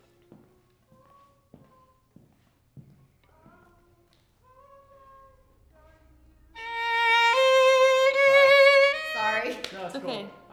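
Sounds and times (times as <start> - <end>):
violin: 4.6 - 10.5.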